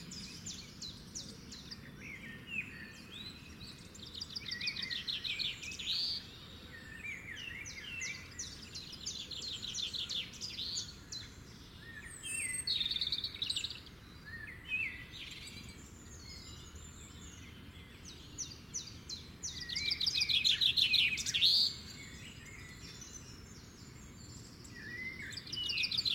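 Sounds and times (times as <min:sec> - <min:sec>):
morning birds singing: 0:00.0 - 0:26.1.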